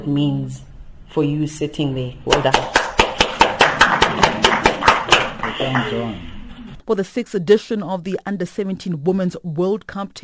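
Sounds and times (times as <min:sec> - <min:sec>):
speech: 0:00.0 - 0:02.8, 0:05.6 - 0:06.3, 0:06.9 - 0:10.2
hands clapping: 0:02.3 - 0:06.0.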